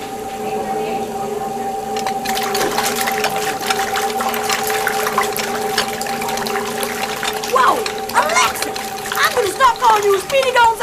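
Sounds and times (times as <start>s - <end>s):
low constant hum: 0.0s - 10.8s
running water while washing dishes: 1.1s - 10.8s
dishes splashing while washed: 1.9s - 10.8s.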